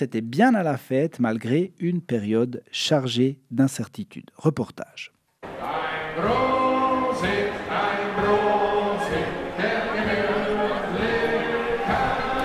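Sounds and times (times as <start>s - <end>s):
speech: 0.0s - 8.6s
Bavarian music at the Oktoberfest on the Wiesn: 5.4s - 12.4s
crowd joining a collective toast: 5.4s - 12.4s.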